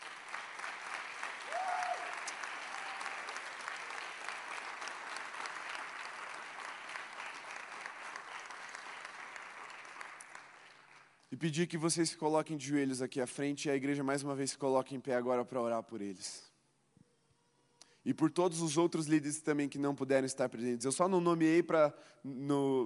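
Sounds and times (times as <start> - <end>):
audience clapping hands: 0.0 - 11.2
speech: 11.4 - 16.5, 18.0 - 22.8.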